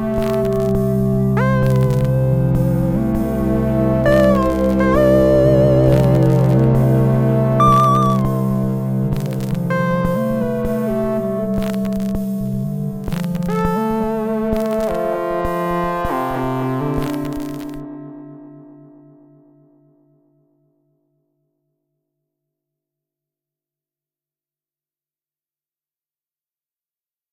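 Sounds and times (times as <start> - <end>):
noisy analog: 0.0 - 17.8.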